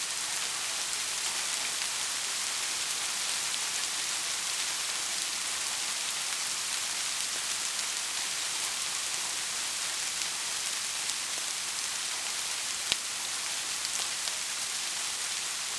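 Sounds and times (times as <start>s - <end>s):
rain: 0.0s - 15.7s.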